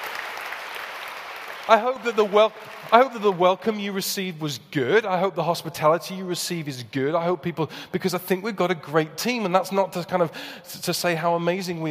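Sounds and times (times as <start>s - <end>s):
crowd applauding: 0.0s - 3.9s
speech: 1.7s - 11.8s.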